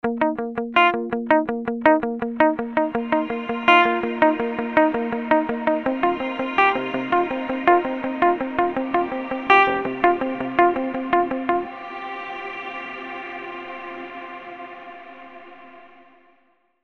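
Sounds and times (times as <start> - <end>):
funk guitar wobble with pre-delay: 0.0 - 11.7.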